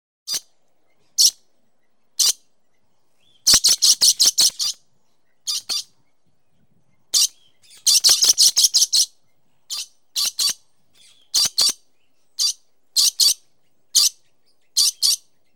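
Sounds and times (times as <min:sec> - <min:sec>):
parrot chirping: 0:01.2 - 0:01.4, 0:02.2 - 0:02.4, 0:03.2 - 0:04.8, 0:05.4 - 0:06.0, 0:07.1 - 0:09.1, 0:09.7 - 0:11.8, 0:12.4 - 0:14.2, 0:14.8 - 0:15.3.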